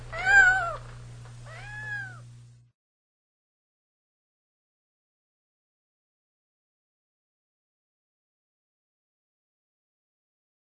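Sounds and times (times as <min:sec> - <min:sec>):
cat meowing: 0:00.1 - 0:00.9, 0:01.5 - 0:02.3.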